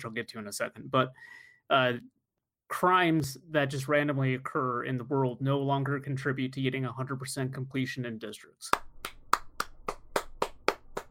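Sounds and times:
speech: 0:00.0 - 0:08.9
small quiet hand claps: 0:08.7 - 0:11.0.

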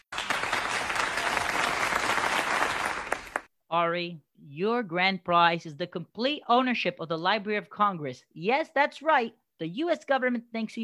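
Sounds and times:
audience applause: 0:00.0 - 0:03.5
speech: 0:03.7 - 0:10.8.

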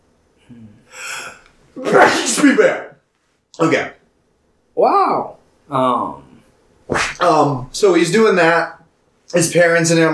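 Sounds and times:
sneeze: 0:01.8 - 0:02.6, 0:06.9 - 0:07.3
speech: 0:01.8 - 0:02.9, 0:03.6 - 0:04.0, 0:04.8 - 0:06.2, 0:06.9 - 0:10.1.

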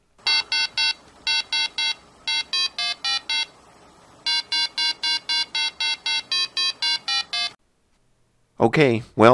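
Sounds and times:
Merlin 1970s handheld electronic game beeps: 0:00.3 - 0:03.5, 0:04.3 - 0:07.6
speech: 0:08.6 - 0:09.3.

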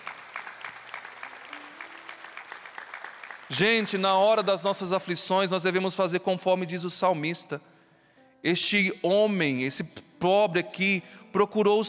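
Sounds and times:
audience applauding: 0:00.0 - 0:04.5
speech: 0:03.5 - 0:07.7, 0:08.4 - 0:11.8.

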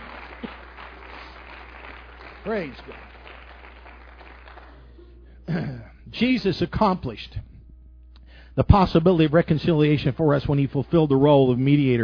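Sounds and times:
audience hand clapping: 0:00.0 - 0:05.0
speech: 0:02.4 - 0:03.1, 0:05.5 - 0:07.5, 0:08.6 - 0:12.0.

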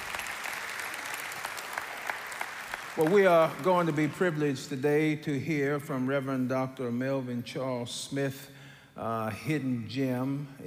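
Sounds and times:
audience applauding: 0:00.0 - 0:04.6
speech: 0:03.0 - 0:10.6.

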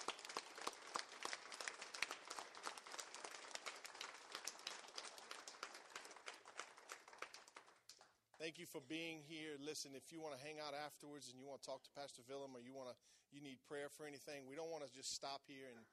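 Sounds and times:
audience applauding, hand clapping: 0:00.0 - 0:08.2
speech: 0:08.4 - 0:15.9.

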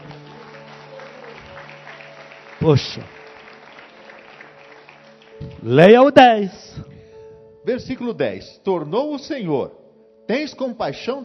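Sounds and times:
audience applauding: 0:00.0 - 0:06.2
speech: 0:02.6 - 0:03.2, 0:05.6 - 0:06.8, 0:07.6 - 0:11.2.

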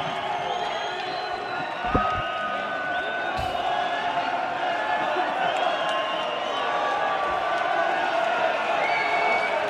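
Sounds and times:
crowd whistles: 0:00.0 - 0:04.0, 0:05.0 - 0:07.1, 0:08.7 - 0:09.6
large arena crowd cheering: 0:00.0 - 0:09.6.

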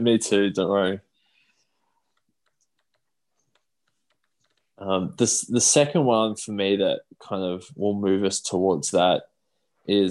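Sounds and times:
speech: 0:00.0 - 0:01.1, 0:04.8 - 0:10.0
faint typing on a computer keyboard: 0:02.1 - 0:04.7.

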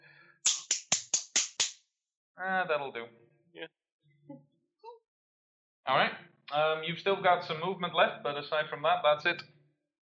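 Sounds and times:
hands clapping into a microphone: 0:00.5 - 0:01.8
speech: 0:02.4 - 0:04.5, 0:05.9 - 0:09.5.

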